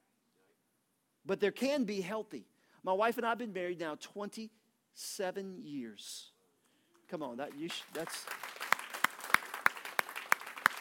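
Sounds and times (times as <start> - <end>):
speech: 1.2 - 6.3, 7.1 - 8.5
hand clapping during a church sermon: 7.4 - 10.8.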